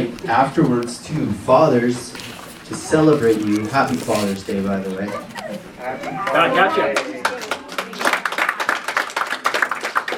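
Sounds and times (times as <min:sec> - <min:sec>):
speech: 0:00.2 - 0:07.2
audience applause for fathers: 0:06.1 - 0:10.1.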